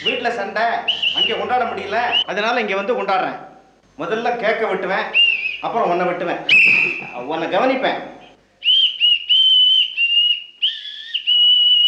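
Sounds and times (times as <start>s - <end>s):
speech: 0.0s - 8.2s
whistle blasts: 0.9s - 1.5s, 5.2s - 5.7s, 6.5s - 7.1s, 8.6s - 11.8s.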